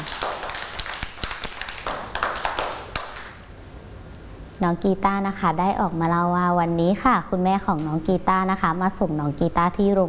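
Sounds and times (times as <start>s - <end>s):
children clapping: 0.0s - 3.4s
speech: 4.6s - 10.0s.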